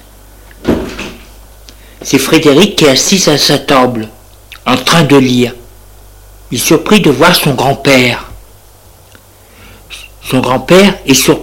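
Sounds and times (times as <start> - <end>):
door opening: 0.6 - 1.3
speech: 2.0 - 5.6, 6.5 - 8.3, 10.3 - 11.4.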